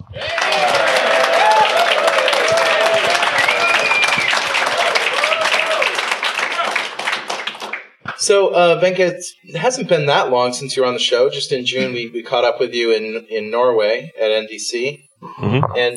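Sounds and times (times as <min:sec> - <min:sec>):
audience round of applause: 0:00.0 - 0:07.9
speech: 0:08.3 - 0:15.9.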